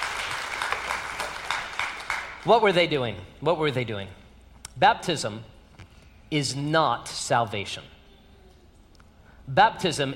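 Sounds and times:
church audience applauding: 0:00.0 - 0:02.4
speech: 0:02.4 - 0:04.2, 0:04.8 - 0:05.5, 0:06.3 - 0:08.0, 0:09.5 - 0:10.1.

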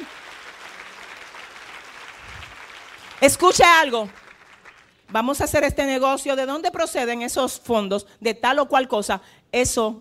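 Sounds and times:
audience applause: 0:00.0 - 0:05.0
speech: 0:03.2 - 0:04.2, 0:05.1 - 0:09.9.

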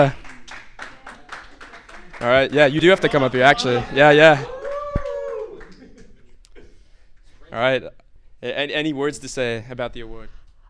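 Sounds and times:
speech: 0:00.0 - 0:00.2, 0:02.2 - 0:04.6, 0:07.5 - 0:10.4
audience clapping: 0:00.0 - 0:06.2.

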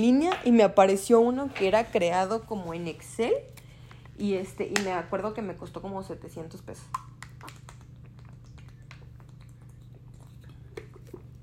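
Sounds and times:
speech: 0:00.0 - 0:03.6, 0:04.2 - 0:07.1
person drinking water: 0:07.3 - 0:11.4.

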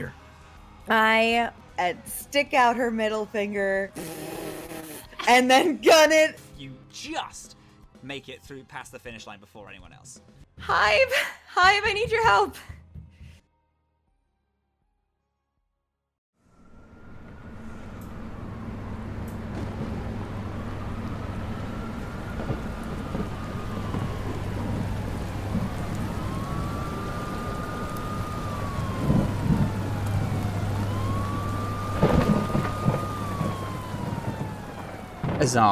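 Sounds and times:
speech: 0:00.0 - 0:00.2, 0:00.8 - 0:04.2, 0:05.3 - 0:12.8, 0:35.5 - 0:35.7
siren wailing: 0:16.4 - 0:35.7
low rumble: 0:16.6 - 0:35.6
heavy rain pounding down: 0:18.2 - 0:35.7.

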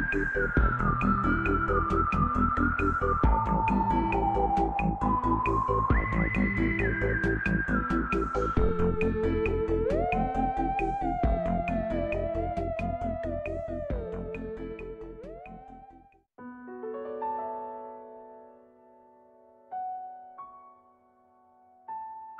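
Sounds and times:
soundtrack piece with low chords and sustained melody: 0:00.0 - 0:16.0.

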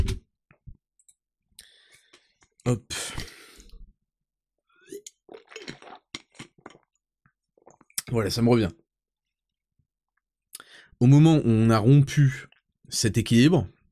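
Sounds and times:
speech: 0:02.6 - 0:03.0, 0:08.1 - 0:08.8, 0:11.0 - 0:13.8
sipping a drink: 0:04.8 - 0:07.0, 0:07.6 - 0:08.1.

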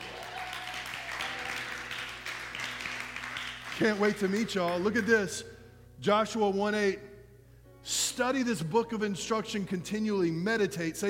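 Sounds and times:
audience applause: 0:00.0 - 0:04.8
speech: 0:03.8 - 0:07.1, 0:07.8 - 0:11.0.

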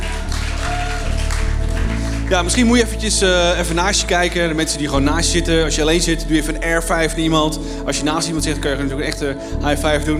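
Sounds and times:
audience applause: 0:00.0 - 0:04.9
speech: 0:02.3 - 0:10.1.

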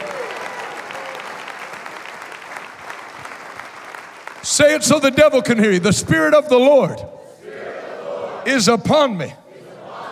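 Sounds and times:
large crowd applause: 0:00.0 - 0:04.6
speech: 0:04.5 - 0:07.2, 0:08.4 - 0:09.4.

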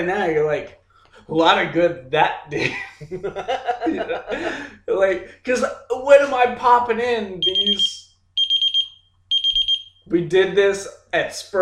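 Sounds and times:
speech: 0:00.0 - 0:08.0, 0:10.1 - 0:11.5
laughter: 0:01.3 - 0:06.9
phone notification alert beeps: 0:07.4 - 0:09.9.

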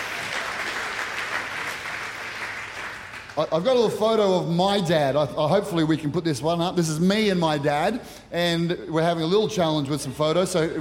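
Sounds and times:
audience round of applause for dads: 0:00.0 - 0:03.5
speech: 0:03.4 - 0:10.7.

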